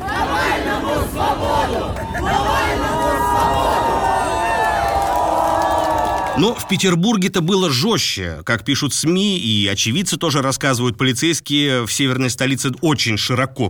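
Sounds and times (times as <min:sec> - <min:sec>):
protest crowd chanting slogans: 0:00.0 - 0:05.6
speech: 0:06.4 - 0:13.6.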